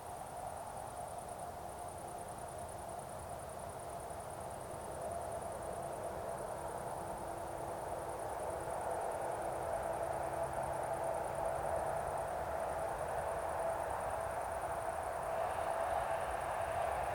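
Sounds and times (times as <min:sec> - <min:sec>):
crickets chirping over an evening meadow: 0:00.0 - 0:17.1
faint light wind: 0:00.0 - 0:17.1
road traffic rumble and hiss: 0:07.1 - 0:17.1.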